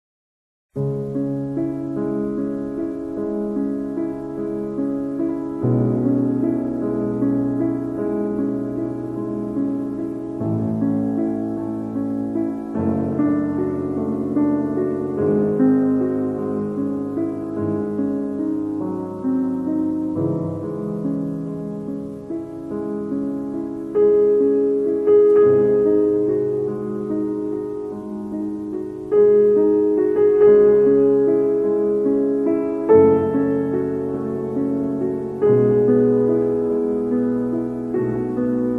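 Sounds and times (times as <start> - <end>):
sonata: 0.7 - 38.7.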